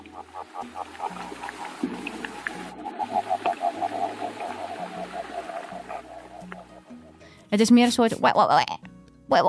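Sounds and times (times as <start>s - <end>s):
Titicaca water frog calling underwater: 0.0s - 7.2s
speech: 7.5s - 8.7s.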